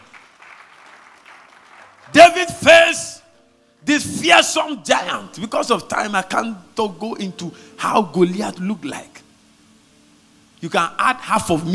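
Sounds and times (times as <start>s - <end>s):
audience applause: 0.0s - 2.2s
speech: 4.0s - 9.2s, 10.6s - 11.7s.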